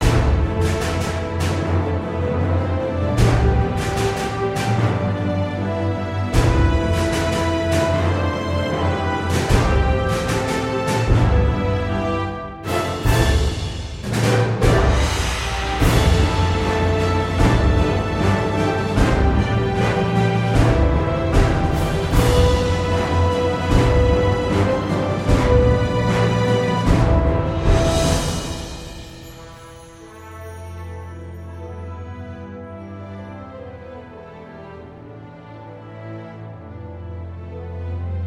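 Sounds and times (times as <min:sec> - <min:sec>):
mecha boss battle background music: 0:00.0 - 0:29.7.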